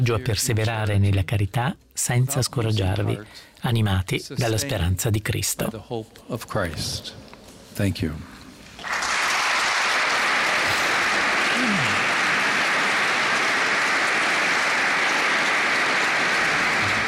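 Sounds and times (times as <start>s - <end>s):
speech: 0.0s - 7.2s, 7.8s - 8.3s
large audience applause after a speech: 8.8s - 17.0s.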